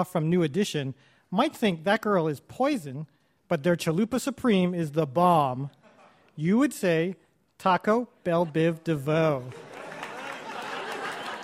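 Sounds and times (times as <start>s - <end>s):
speech: 0.0s - 5.8s, 6.4s - 9.7s
laughter: 5.8s - 6.3s, 8.3s - 11.4s
live audience clapping and cheering: 9.4s - 11.4s.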